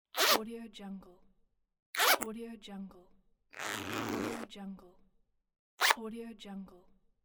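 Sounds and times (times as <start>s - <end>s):
zipper zipping: 0.1s - 0.4s, 2.0s - 2.3s, 3.6s - 4.5s, 5.8s - 6.0s.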